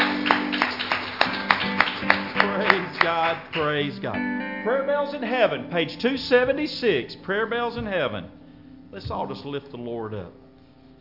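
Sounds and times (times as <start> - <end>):
church congregation clapping in praise during a worship service: 0.0 - 4.2
low musical backdrop: 0.0 - 10.9
speech: 3.2 - 10.4.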